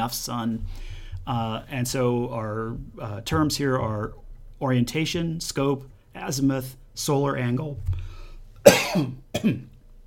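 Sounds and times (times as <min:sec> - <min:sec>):
speech: 0:00.0 - 0:09.7
man coughing: 0:08.6 - 0:09.7.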